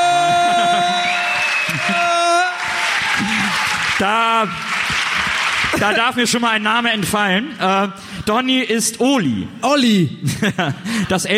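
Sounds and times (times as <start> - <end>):
laughter: 0.0 - 2.5, 5.0 - 6.3, 10.2 - 11.3
audience applause: 0.3 - 7.1
speech: 4.0 - 4.7, 5.8 - 11.3.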